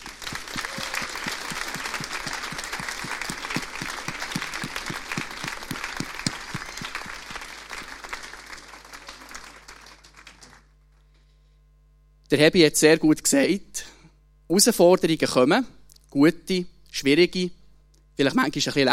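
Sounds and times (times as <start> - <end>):
loud audience applause: 0.0 - 10.7
speech: 12.3 - 13.7, 14.5 - 17.6, 18.2 - 18.9.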